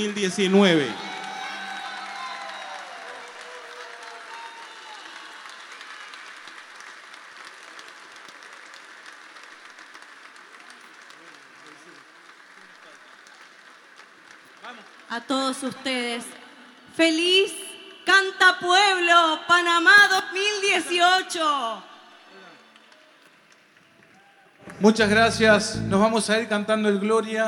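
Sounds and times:
speech: 0.0 - 1.0, 15.5 - 16.4, 17.0 - 21.9, 24.8 - 27.4
crowd applauding: 0.0 - 15.7, 21.3 - 26.4
cheers and whoops: 0.4 - 6.6, 23.8 - 24.6.

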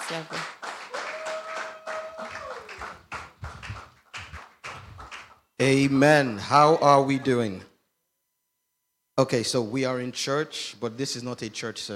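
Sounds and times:
audience clapping to welcome a reverend at a health talk in a church: 0.0 - 5.5
speech: 0.1 - 0.5, 5.6 - 7.7, 9.2 - 11.9.

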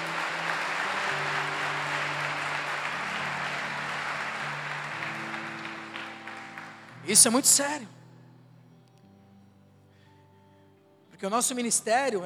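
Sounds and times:
crowd applause: 0.0 - 7.5
low sustained keyboard notes: 0.0 - 11.7
speech: 7.1 - 8.0, 11.2 - 12.2.

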